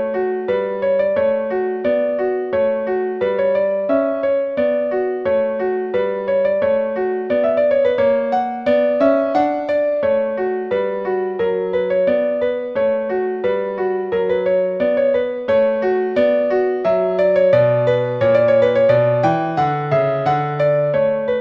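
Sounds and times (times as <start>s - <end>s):
solo piano piece: 0.0s - 21.4s.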